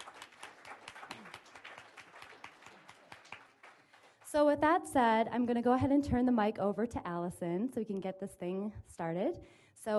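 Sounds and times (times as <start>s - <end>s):
audience applause: 0.0s - 4.2s
speech: 4.3s - 9.9s.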